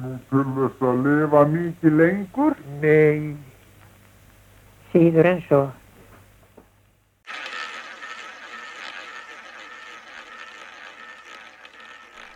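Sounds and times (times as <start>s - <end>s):
speech: 0.1s - 3.5s, 4.9s - 5.8s
roulette wheel spinning: 7.3s - 12.3s.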